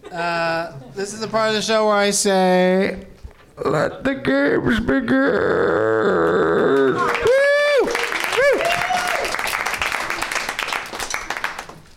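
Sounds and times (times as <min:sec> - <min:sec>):
speech: 0:00.1 - 0:07.3
polite audience applause: 0:06.7 - 0:11.9
swooping whoop-like sounds: 0:06.8 - 0:09.4.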